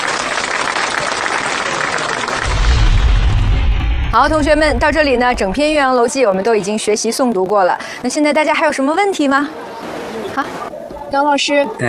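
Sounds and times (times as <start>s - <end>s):
classroom of students applauding: 0.0s - 2.5s
low rumble: 2.4s - 6.6s
speech: 4.2s - 11.8s.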